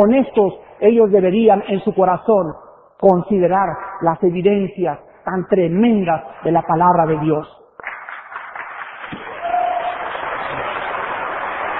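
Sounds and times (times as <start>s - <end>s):
speech: 0.0s - 7.6s
audience applause: 7.8s - 11.7s.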